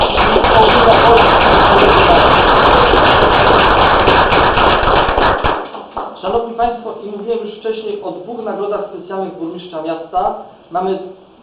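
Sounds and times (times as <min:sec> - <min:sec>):
crowd applauding: 0:00.0 - 0:06.2
speech: 0:07.6 - 0:11.2.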